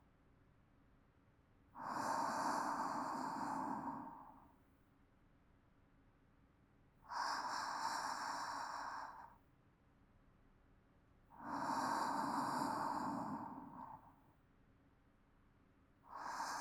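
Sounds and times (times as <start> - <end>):
calm sleep breathing: 1.8 - 4.6, 7.1 - 9.4, 11.3 - 14.2, 16.1 - 16.5.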